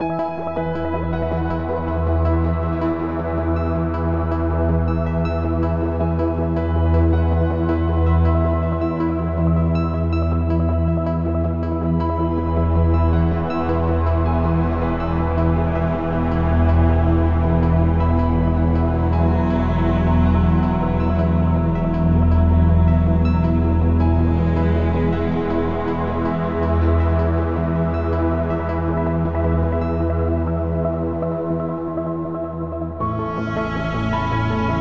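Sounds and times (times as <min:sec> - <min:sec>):
joyful ambient music: 0:00.0 - 0:34.7.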